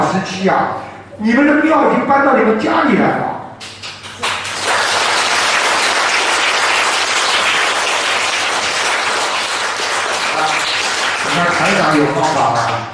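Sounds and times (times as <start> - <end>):
speech: 0.4 - 3.4, 11.7 - 12.9
audience applause: 4.1 - 12.9.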